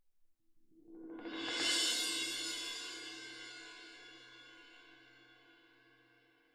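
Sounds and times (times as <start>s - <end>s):
cymbal: 1.3s - 5.6s.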